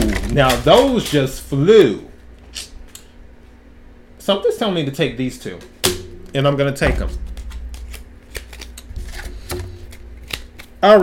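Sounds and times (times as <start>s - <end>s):
tarot cards being handled and gathered up: 0.0s - 1.3s, 7.2s - 10.8s
speech: 0.4s - 2.7s, 4.2s - 5.7s, 6.3s - 7.2s, 10.8s - 11.0s.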